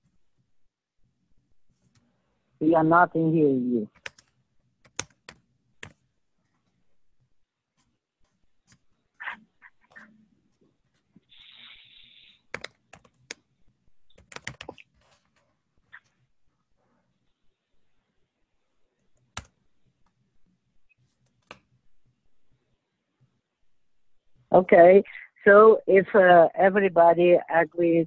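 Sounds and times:
speech: 2.6 - 4.0, 24.6 - 28.0
keystrokes on a computer keyboard: 3.9 - 6.0, 12.4 - 13.4, 14.1 - 15.2, 19.3 - 19.6.

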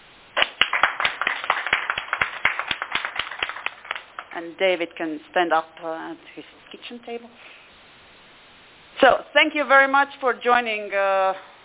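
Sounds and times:
meeting participants applauding: 0.4 - 4.4
speech: 4.4 - 7.6, 9.0 - 11.5.

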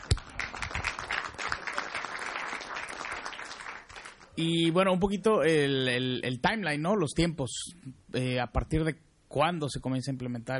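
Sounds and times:
audience applause: 0.0 - 4.3
speech: 4.4 - 10.5.

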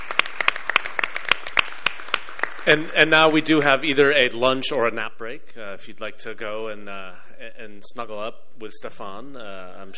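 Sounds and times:
small audience applause at an ICANN meeting: 0.0 - 3.7
speech: 2.6 - 9.9.

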